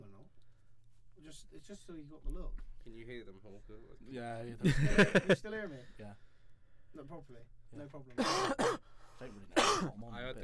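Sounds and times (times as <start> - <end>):
speech: 1.2 - 6.3, 6.9 - 10.4
laughter: 4.6 - 5.4
cough: 8.2 - 8.9, 9.6 - 10.0.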